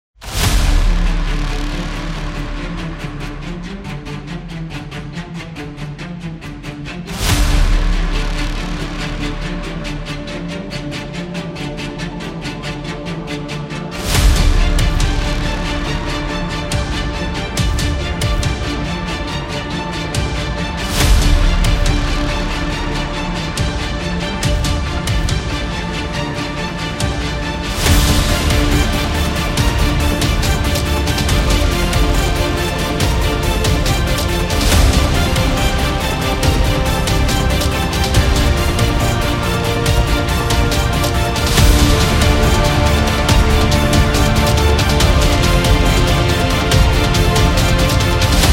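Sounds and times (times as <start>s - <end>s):
epic trailer music: 0.2s - 48.5s.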